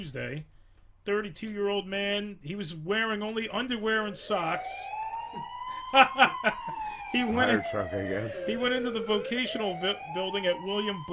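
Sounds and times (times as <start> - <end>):
speech: 0.0 - 11.1
fire alarm sound effect: 3.8 - 11.1.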